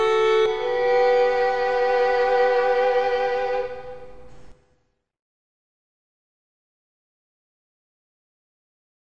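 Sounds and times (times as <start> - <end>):
violin backing track for weddings: 0.0 - 4.3.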